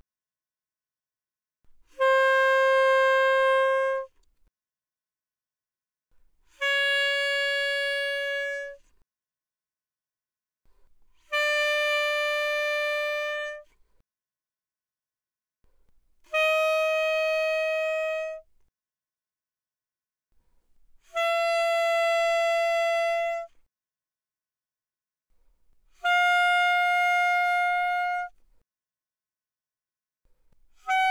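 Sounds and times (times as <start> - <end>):
alto saxophone notes without vibrato, mezzo-forte, C5 to A-flat 5: 1.9 - 4.1, 6.6 - 8.8, 11.3 - 13.7, 16.3 - 18.4, 21.1 - 23.5, 26.0 - 28.4, 30.8 - 31.0.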